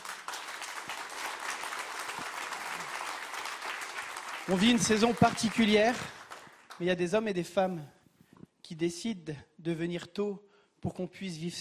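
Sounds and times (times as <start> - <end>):
audience applause: 0.0 - 6.8
speech: 4.5 - 6.2, 6.8 - 8.0, 8.7 - 11.6.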